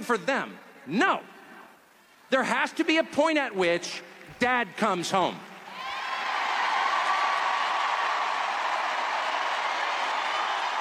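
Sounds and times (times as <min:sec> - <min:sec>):
speech: 0:00.0 - 0:01.4, 0:02.3 - 0:05.5
audience cheering: 0:05.6 - 0:10.8.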